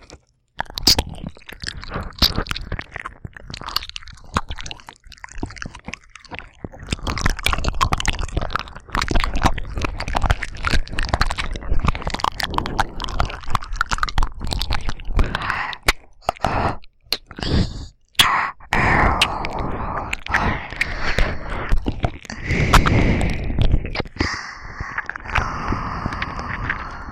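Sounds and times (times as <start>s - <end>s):
binaural ear licking on both ears: 0.0s - 27.1s
aroused breathing: 15.3s - 16.8s, 17.4s - 27.1s.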